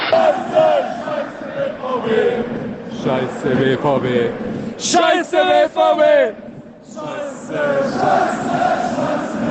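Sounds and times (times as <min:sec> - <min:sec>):
football crowd chanting in the stadium during a VfB Stuttgart match: 0:00.0 - 0:09.4.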